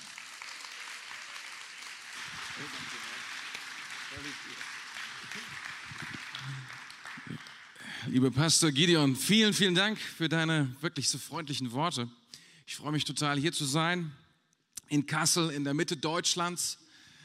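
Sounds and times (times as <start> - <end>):
audience applause welcoming the pastor: 0.0 - 8.0
speech: 2.6 - 3.1, 4.1 - 14.2, 14.9 - 16.8.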